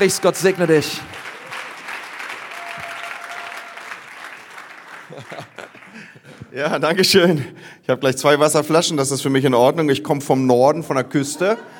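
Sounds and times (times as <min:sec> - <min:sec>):
speech: 0:00.0 - 0:01.2, 0:06.6 - 0:11.7
audience applause: 0:00.0 - 0:06.5
laughter: 0:04.9 - 0:06.5.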